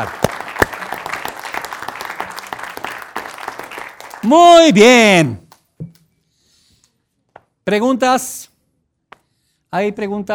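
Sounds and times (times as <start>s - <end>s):
speech: 0.0s - 0.2s, 4.2s - 5.4s, 7.7s - 8.5s, 9.7s - 10.3s
audience clapping: 0.0s - 5.6s.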